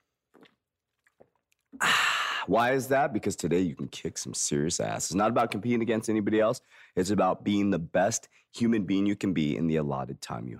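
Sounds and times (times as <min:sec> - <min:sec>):
person drinking a sip of water: 0:00.2 - 0:02.4
speech: 0:01.8 - 0:10.5.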